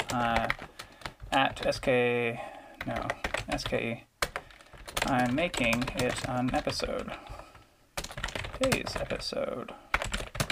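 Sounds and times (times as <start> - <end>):
typing on a computer keyboard: 0.0 - 1.9, 2.8 - 7.2, 8.0 - 9.2, 9.9 - 10.5
speech: 0.1 - 0.6, 1.3 - 4.1, 5.0 - 7.3, 8.6 - 9.8.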